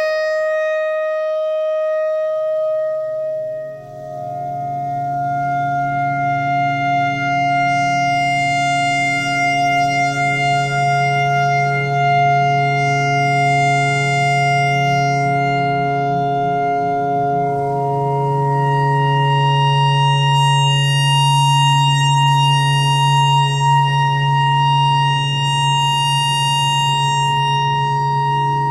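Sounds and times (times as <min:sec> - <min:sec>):
clarinet notes in E pentatonic imitating a tornado siren: 0:00.0 - 0:28.6.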